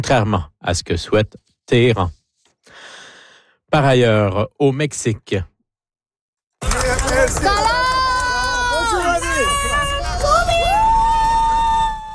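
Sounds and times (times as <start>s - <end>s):
speech: 0.0s - 2.2s, 3.7s - 5.5s, 7.1s - 8.0s
crowd of supporters cheering and shouting welcoming Iran's soccer team in Mexico: 6.6s - 12.1s.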